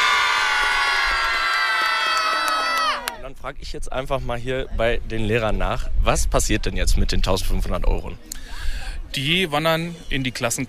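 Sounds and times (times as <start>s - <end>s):
school pupils cheering and shouting celebrating a class prize: 0.0s - 3.2s
speech: 3.4s - 10.6s.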